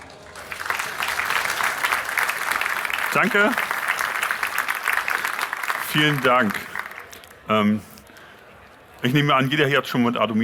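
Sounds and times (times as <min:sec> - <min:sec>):
audience applause for the speaker: 0:00.0 - 0:07.2
speech: 0:03.1 - 0:03.7, 0:05.9 - 0:06.7, 0:07.5 - 0:07.9, 0:09.0 - 0:10.4.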